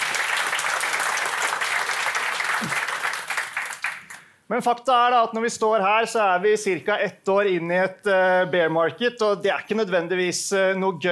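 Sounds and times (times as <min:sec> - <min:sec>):
audience applause: 0:00.0 - 0:04.2
speech: 0:04.5 - 0:11.1.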